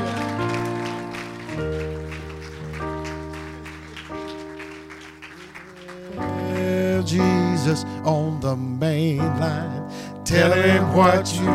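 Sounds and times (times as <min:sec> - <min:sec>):
audience clapping hands in a steady rhythm: 0:00.0 - 0:07.8
music with deep bass and organ-like tones: 0:00.0 - 0:11.5
speech: 0:07.1 - 0:11.5.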